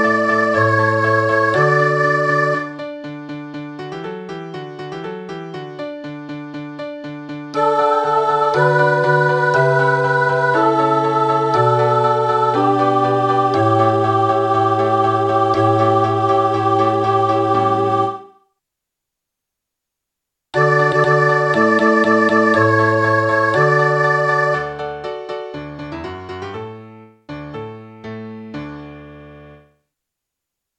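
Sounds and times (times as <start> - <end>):
soprano singing: 0.0 - 3.0, 7.6 - 18.5, 20.6 - 25.3.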